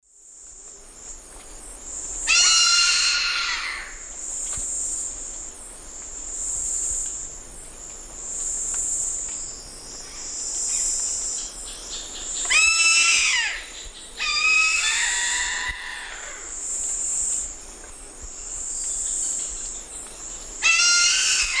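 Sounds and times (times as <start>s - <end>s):
Black caracara Daptrius ater raspy screams in eastern lowlands of South America: 2.3s - 4.0s, 12.5s - 16.5s, 20.6s - 21.5s.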